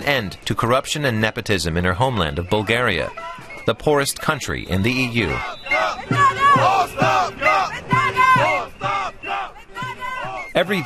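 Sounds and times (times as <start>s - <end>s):
speech: 0.0s - 7.4s, 10.6s - 10.8s
faint whistles or horns: 2.2s - 10.8s
crowd chanting: 5.2s - 10.8s.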